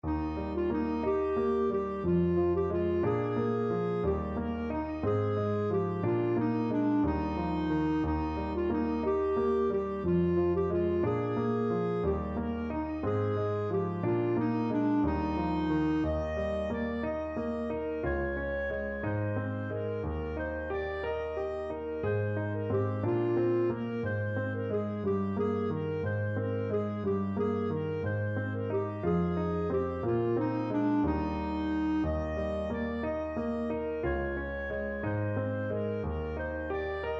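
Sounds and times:
clarinet melody: 0.0s - 37.1s.

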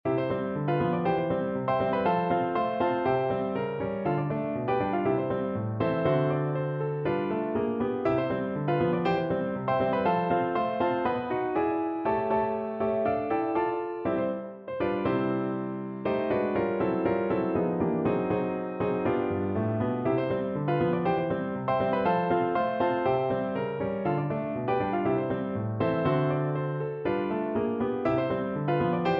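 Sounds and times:
piano: 0.0s - 29.1s.

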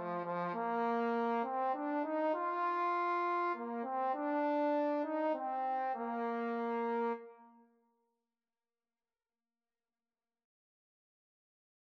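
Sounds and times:
trombone duet: 0.0s - 7.3s.

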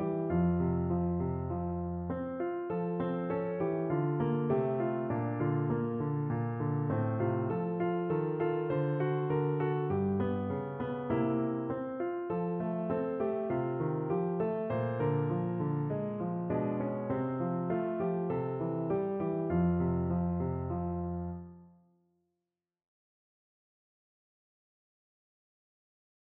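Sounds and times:
folk tune played on piano: 0.0s - 21.7s.

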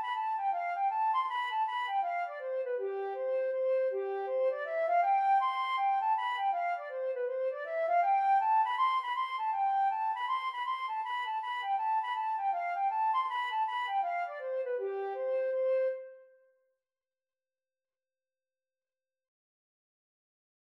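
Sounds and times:
flute playing: 0.0s - 16.4s.

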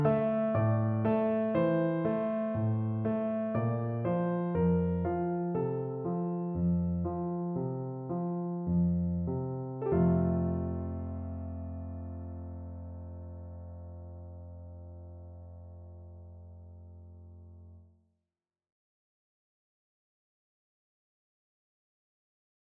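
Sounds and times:
piano etude: 0.0s - 16.9s.

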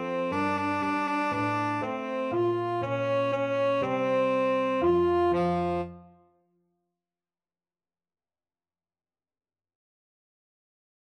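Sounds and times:
tenor saxophone: 0.0s - 6.2s.

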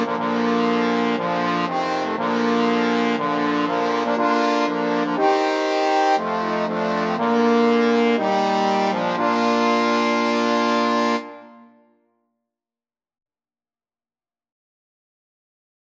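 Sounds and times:
trombone quartet playing: 0.0s - 11.6s.

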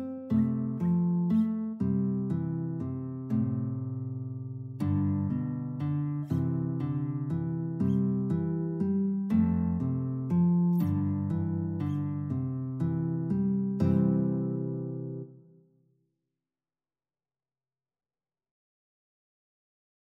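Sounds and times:
guitar: 0.0s - 15.7s.

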